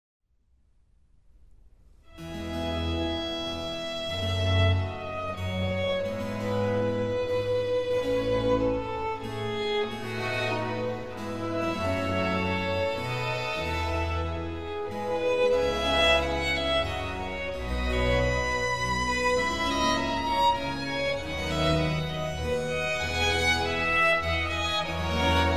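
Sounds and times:
slow movement for two violins: 2.1s - 25.5s.

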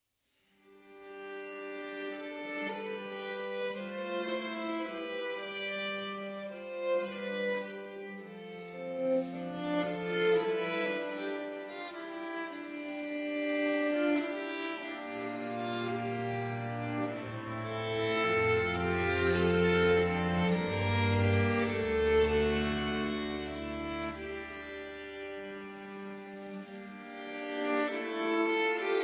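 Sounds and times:
string ensemble playing an arrangement: 1.1s - 29.0s.

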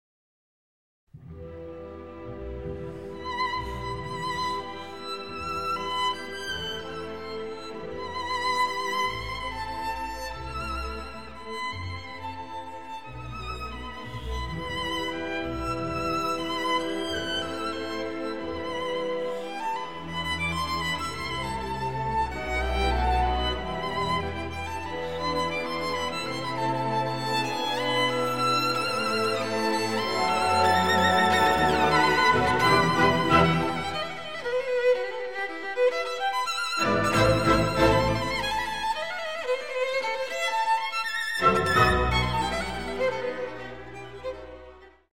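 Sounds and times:
violin concerto in E minor: 1.2s - 45.1s.

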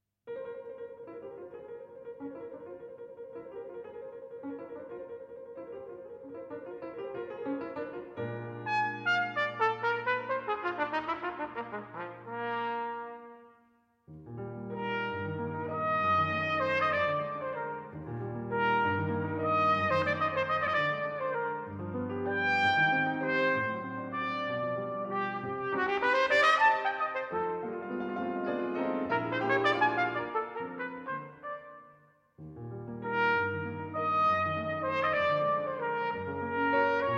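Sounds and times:
piano: 0.3s - 37.1s
trumpet: 7.7s - 13.9s, 14.6s - 32.2s, 32.9s - 37.1s.

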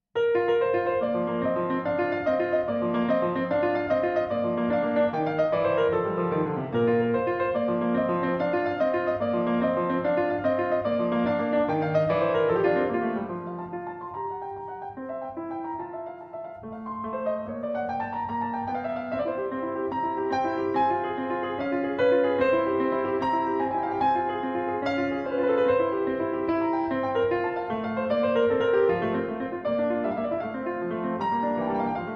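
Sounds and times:
harpsichord sonata: 0.2s - 32.1s.

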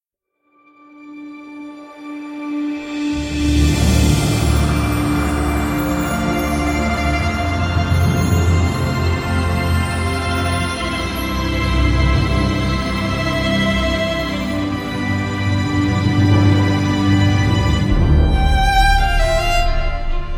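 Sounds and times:
orchestral music: 1.2s - 20.3s.

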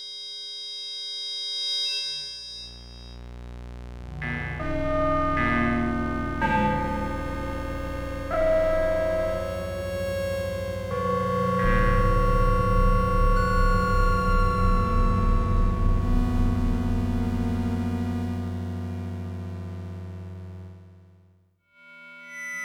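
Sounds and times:
electronic music: 4.1s - 20.4s.

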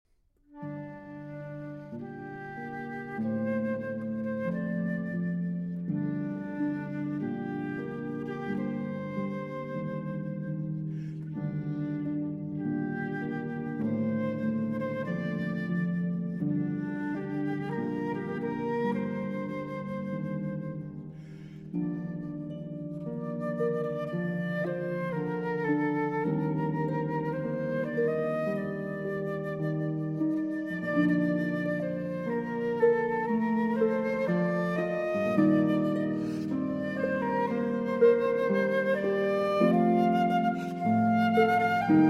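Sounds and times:
flute: 0.4s - 42.0s
harp: 0.4s - 42.0s.

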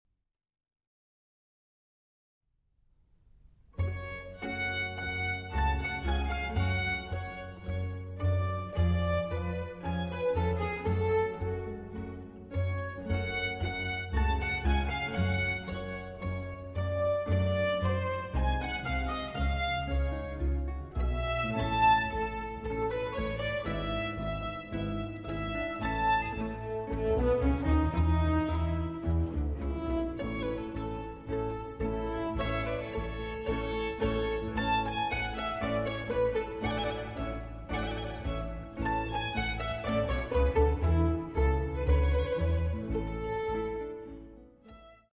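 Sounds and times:
sinfonia in G for strings and continuo: 3.8s - 45.1s.

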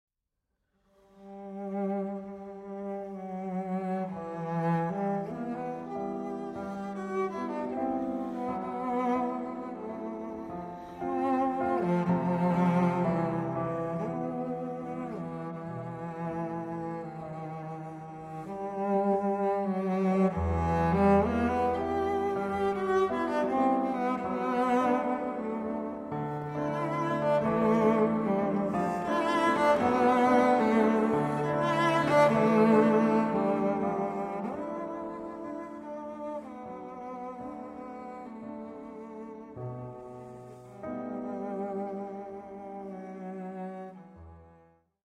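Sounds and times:
sentimental waltz for cello and piano: 1.0s - 44.9s.

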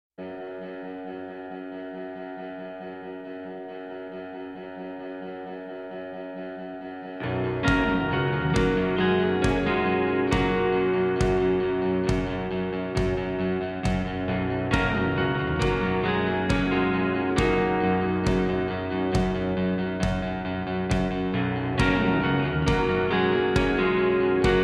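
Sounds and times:
instrumental music: 6.5s - 24.6s.

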